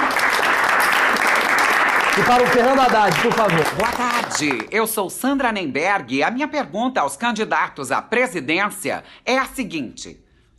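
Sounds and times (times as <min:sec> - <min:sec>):
audience applause: 0:00.0 - 0:04.7
speech: 0:02.2 - 0:10.2.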